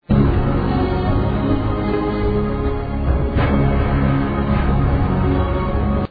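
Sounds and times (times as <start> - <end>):
storm in Africa: 0.1 - 6.0.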